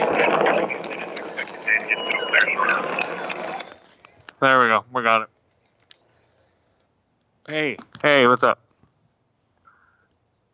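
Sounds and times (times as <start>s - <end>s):
rocket engine at full throttle in a spaceflight video game: 0.0s - 3.9s
speech: 4.4s - 5.3s, 7.5s - 8.6s.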